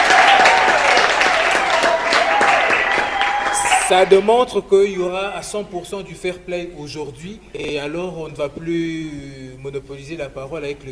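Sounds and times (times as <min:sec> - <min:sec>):
audience applause: 0:00.0 - 0:04.3
speech: 0:03.9 - 0:10.9.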